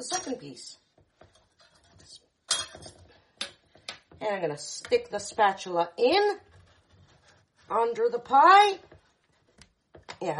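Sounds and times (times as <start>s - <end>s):
speech: 0.0s - 0.8s, 4.2s - 6.5s, 7.7s - 8.9s, 10.2s - 10.3s
ceramic plate clinking as it is picked up to serve pie: 2.5s - 3.6s.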